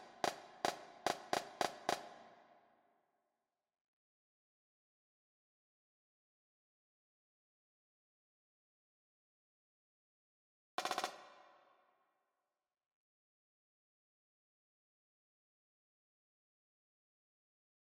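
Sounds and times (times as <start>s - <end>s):
jig snare drum: 0.0s - 2.3s, 10.8s - 11.5s.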